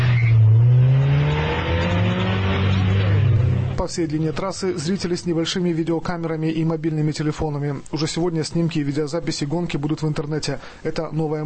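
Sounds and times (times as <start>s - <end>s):
race car engine revving at start: 0.0s - 3.8s
speech: 3.8s - 11.4s.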